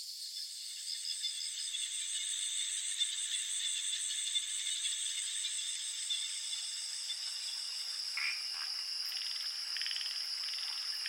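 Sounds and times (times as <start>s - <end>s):
crickets chirping: 0.0s - 11.0s.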